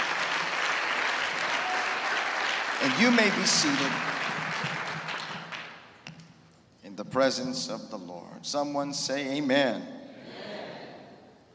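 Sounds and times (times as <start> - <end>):
audience round of applause: 0.0 - 5.8
speech: 2.8 - 4.1, 7.0 - 10.0.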